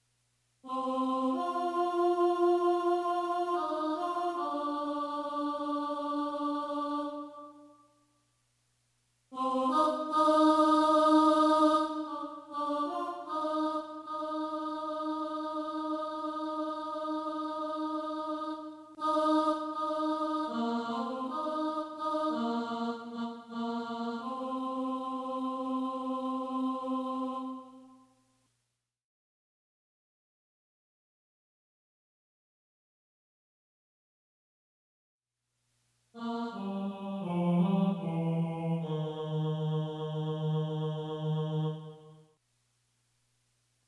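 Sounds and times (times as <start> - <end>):
tenor singing: 0.7 - 7.7, 9.4 - 27.8, 36.2 - 42.2.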